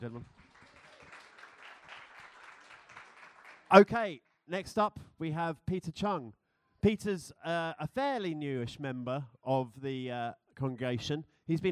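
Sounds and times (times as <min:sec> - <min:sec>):
speech: 0:00.0 - 0:00.5, 0:03.7 - 0:11.7
audience applause: 0:00.2 - 0:03.8.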